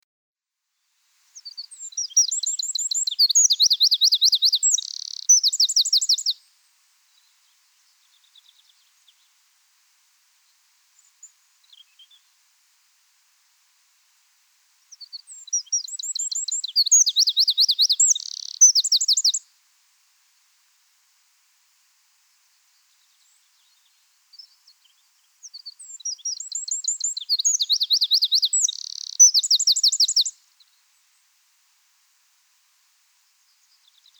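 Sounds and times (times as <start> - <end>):
Eurasian wren singing: 1.4 - 6.4, 14.9 - 19.4, 25.4 - 30.3.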